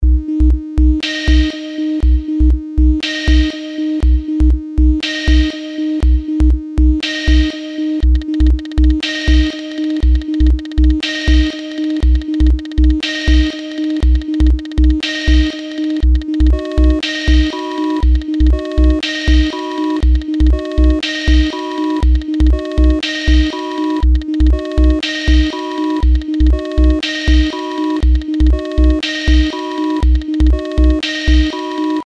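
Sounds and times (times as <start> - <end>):
sine wave tone: 0.0 - 32.0.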